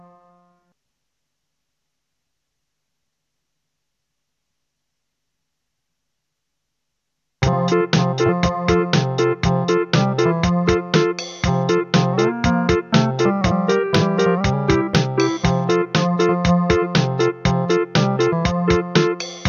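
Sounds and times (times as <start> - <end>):
wedding march music: 7.4 - 19.4.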